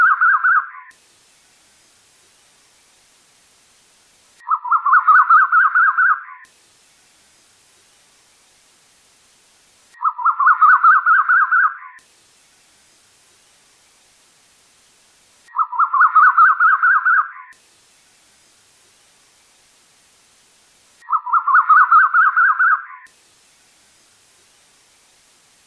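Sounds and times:
bird chattering song: 0:00.0 - 0:01.0, 0:04.4 - 0:06.5, 0:10.0 - 0:12.0, 0:15.5 - 0:17.6, 0:21.0 - 0:23.1.

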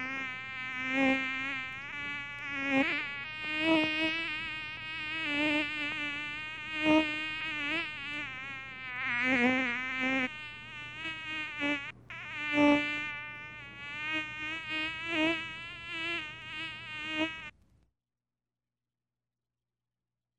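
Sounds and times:
mosquito buzzing: 0:00.0 - 0:17.6.

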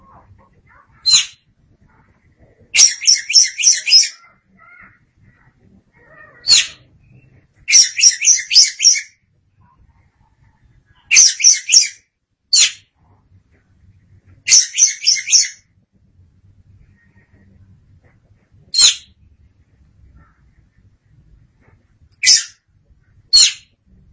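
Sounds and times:
Oriental magpie-robin grating trills: 0:00.0 - 0:02.0, 0:02.7 - 0:09.1, 0:11.1 - 0:12.8, 0:14.5 - 0:15.6, 0:23.3 - 0:23.7.

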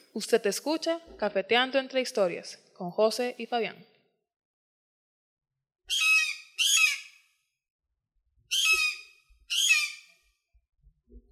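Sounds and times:
speech: 0:00.2 - 0:03.9
chicken hawk screeching: 0:08.5 - 0:10.2.

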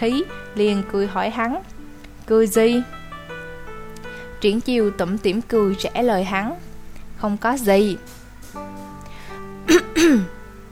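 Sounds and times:
speech: 0:00.0 - 0:03.0, 0:04.4 - 0:06.6, 0:07.2 - 0:08.2, 0:10.0 - 0:10.4
two people clearing throats together: 0:09.7 - 0:10.3.

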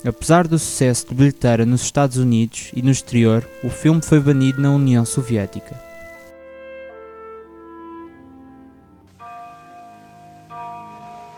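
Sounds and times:
speech: 0:00.0 - 0:05.9
clock bells chiming: 0:00.0 - 0:06.3, 0:09.2 - 0:11.3.

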